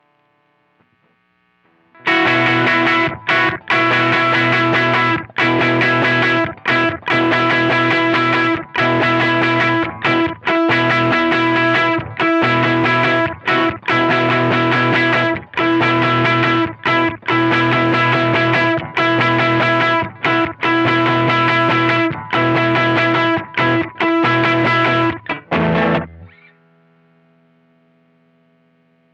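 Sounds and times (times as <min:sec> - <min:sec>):
slow riff: 0:00.9 - 0:29.0.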